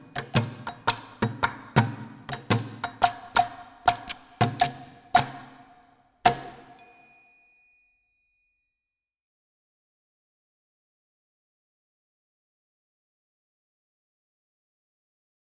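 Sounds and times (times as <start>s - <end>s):
slow student percussion: 0.0s - 8.6s.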